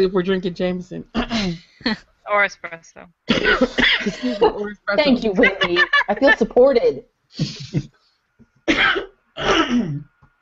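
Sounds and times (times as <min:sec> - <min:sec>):
speech: 0:00.0 - 0:08.0, 0:08.7 - 0:10.1
harsh throaty coughing fit: 0:03.3 - 0:04.4, 0:08.7 - 0:10.1
laughter: 0:03.5 - 0:06.6.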